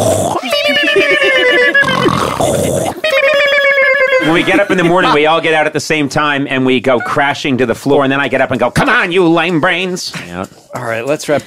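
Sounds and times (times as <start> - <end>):
voices imitating snoring: 0.0 - 0.9, 1.7 - 3.0
laughter: 0.4 - 5.6
speech: 4.4 - 11.4.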